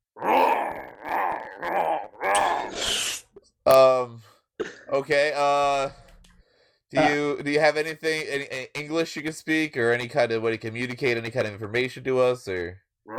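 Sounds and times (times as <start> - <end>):
person imitating lion growling and moaning: 0.2 - 2.9
speech: 5.0 - 6.0, 6.9 - 13.1.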